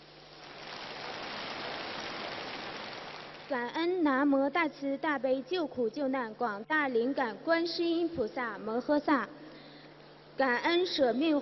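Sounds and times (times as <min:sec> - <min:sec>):
audience applause: 0:00.4 - 0:03.5
speech: 0:03.5 - 0:09.5, 0:10.4 - 0:11.3.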